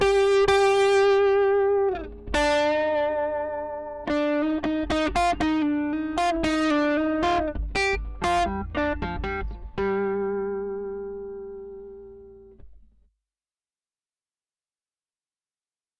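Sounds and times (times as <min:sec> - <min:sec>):
groove music: 0:00.0 - 0:12.6.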